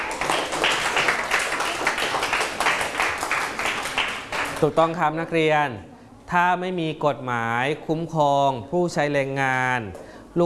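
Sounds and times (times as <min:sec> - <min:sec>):
students clapping: 0:00.0 - 0:04.8
speech: 0:04.6 - 0:10.4.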